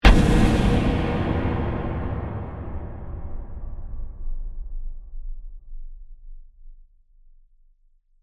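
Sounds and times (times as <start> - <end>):
dark horror hit with reverb: 0.0 - 5.1.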